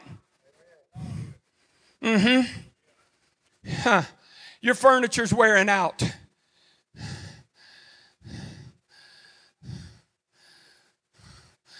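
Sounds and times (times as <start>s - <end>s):
pastor breathing heavily while catching his breath mid-sermon: 1.0s - 2.7s, 3.6s - 4.6s, 6.1s - 11.7s
speech: 2.0s - 2.7s, 3.8s - 6.2s.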